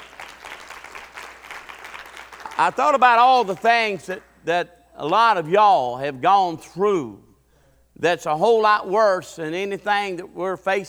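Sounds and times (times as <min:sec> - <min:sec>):
audience hand clapping: 0:00.0 - 0:04.4
speech: 0:02.6 - 0:07.2, 0:08.0 - 0:10.8.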